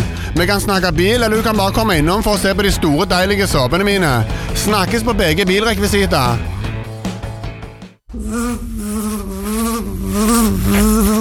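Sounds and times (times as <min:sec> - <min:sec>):
speech: 0:00.4 - 0:06.5, 0:08.1 - 0:08.7
bees buzzing: 0:08.1 - 0:11.1.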